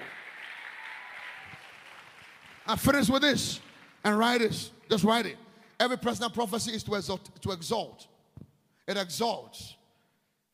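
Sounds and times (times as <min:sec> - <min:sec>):
audience clapping: 0:00.0 - 0:05.2
speech: 0:02.7 - 0:08.1, 0:08.9 - 0:09.8.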